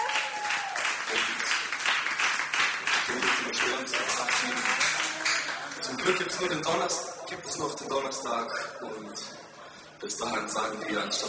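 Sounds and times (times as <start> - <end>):
audience applause: 0.0 - 6.5
speech: 6.1 - 11.2.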